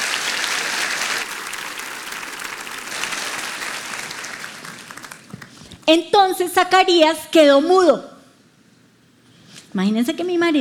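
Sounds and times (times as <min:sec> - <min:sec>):
audience applause: 0:00.0 - 0:05.9
speech: 0:05.9 - 0:08.1, 0:09.8 - 0:10.5.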